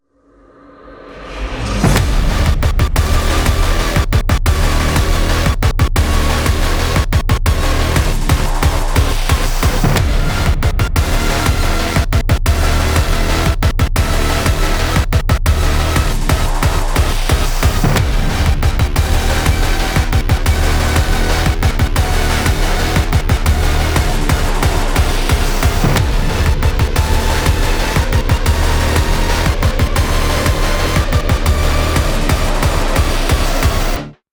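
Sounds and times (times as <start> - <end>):
boss battle music: 1.7 - 34.2.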